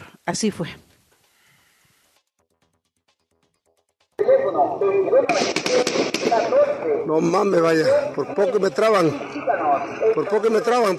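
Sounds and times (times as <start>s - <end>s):
speech: 0.3s - 0.9s, 4.8s - 10.9s
burst of gunfire hitting a pickup truck: 5.2s - 6.7s.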